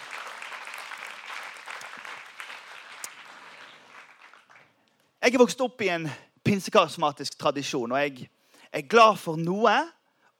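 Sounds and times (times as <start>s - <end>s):
audience applause: 0.0s - 4.8s
speech: 5.2s - 10.3s.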